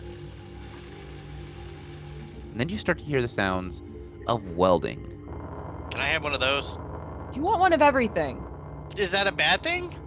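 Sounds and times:
rushing water: 0:00.0 - 0:02.6
speech: 0:02.6 - 0:05.1, 0:06.0 - 0:10.0.

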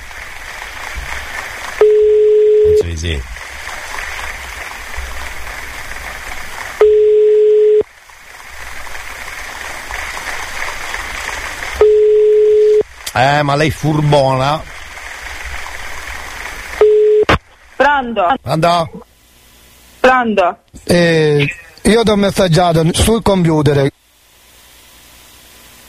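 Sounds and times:
constant hiss: 0:00.0 - 0:25.8
telephone ringing tone while calling a listener: 0:01.8 - 0:02.8, 0:06.8 - 0:07.8, 0:11.8 - 0:12.8, 0:16.8 - 0:17.3
speech: 0:02.9 - 0:03.4, 0:13.2 - 0:14.7, 0:18.0 - 0:19.1, 0:20.1 - 0:24.0.

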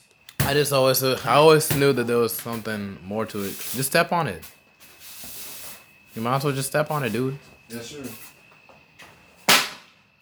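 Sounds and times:
speech: 0:00.5 - 0:04.6, 0:06.2 - 0:08.3
broom swatting at a water bug on a garage floor: 0:04.8 - 0:05.8, 0:09.0 - 0:10.1.

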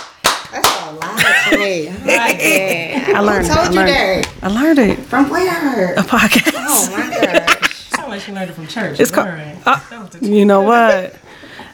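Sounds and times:
podcast hosts clapping hands: 0:00.0 - 0:01.3
speech: 0:00.5 - 0:11.2
laughter: 0:01.2 - 0:03.3, 0:06.3 - 0:08.1.

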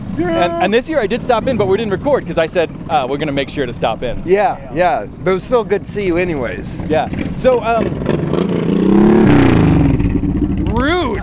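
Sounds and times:
motorcycle engines revving at the Wasteland City 2023 event: 0:00.0 - 0:11.2
speech: 0:00.2 - 0:09.5, 0:10.8 - 0:11.2.

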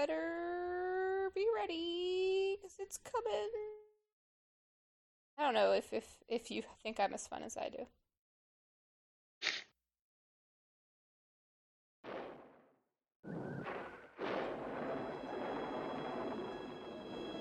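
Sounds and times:
speech: 0:00.0 - 0:00.3, 0:01.4 - 0:03.7, 0:05.4 - 0:08.0
thunder: 0:12.1 - 0:12.5, 0:13.3 - 0:17.3.

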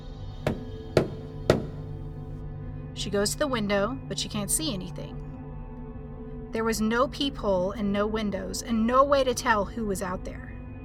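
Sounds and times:
hard knocking on a front door: 0:00.4 - 0:02.3
speech: 0:03.0 - 0:05.3, 0:06.5 - 0:10.5.

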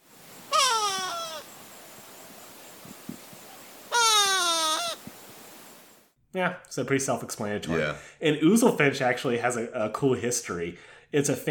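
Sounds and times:
go-away bird nasal call: 0:00.3 - 0:05.9
speech: 0:06.3 - 0:11.4.

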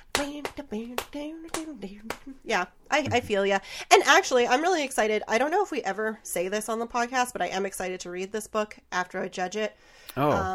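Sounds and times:
sharp hand claps imitating a clap track: 0:00.1 - 0:02.3
speech: 0:00.2 - 0:10.5.

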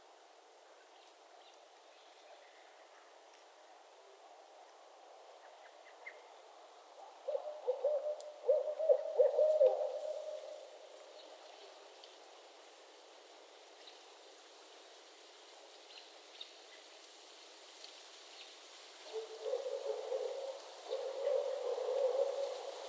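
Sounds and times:
background hiss: 0:00.0 - 0:22.8
barred owls cackling hoots: 0:07.0 - 0:10.7, 0:19.0 - 0:22.8.

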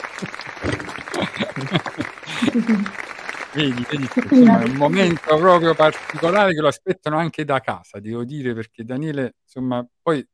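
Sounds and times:
laughter: 0:00.0 - 0:03.0, 0:03.6 - 0:07.4
applause: 0:00.0 - 0:07.2
speech: 0:01.6 - 0:03.0, 0:03.6 - 0:10.3.

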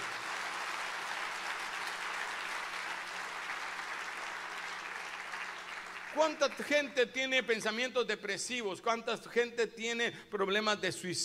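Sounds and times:
audience applause: 0:00.0 - 0:06.7
speech: 0:06.2 - 0:11.2.

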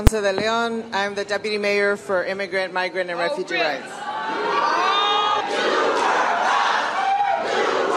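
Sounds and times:
speech: 0:00.0 - 0:04.8
rowdy crowd shouting and jeering at city meeting: 0:03.4 - 0:07.9.

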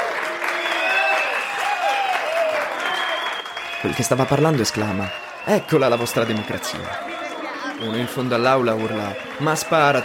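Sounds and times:
crowd of students whistling and jeering: 0:00.0 - 0:10.0
speech: 0:03.8 - 0:07.1, 0:07.8 - 0:10.0.

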